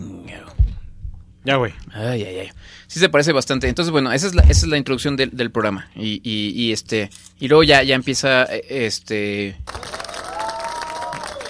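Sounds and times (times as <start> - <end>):
speech: 1.4 - 10.0
applause from a few people: 9.7 - 11.4.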